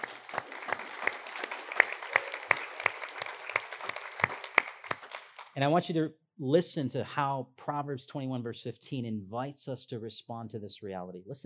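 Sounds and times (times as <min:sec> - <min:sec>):
audience applause: 0:00.0 - 0:05.6
speech: 0:05.6 - 0:11.4.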